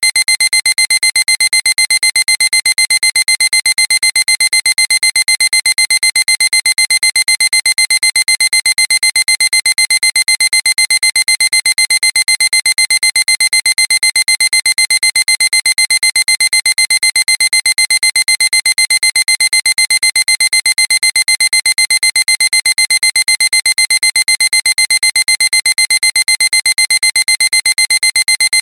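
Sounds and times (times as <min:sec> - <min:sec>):
alarm clock: 0:00.1 - 0:28.6.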